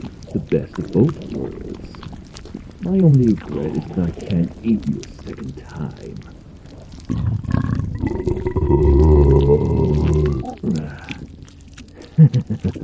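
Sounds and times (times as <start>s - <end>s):
belching: 0.0s - 12.8s
speech: 0.4s - 2.0s, 2.8s - 6.4s, 12.2s - 12.8s.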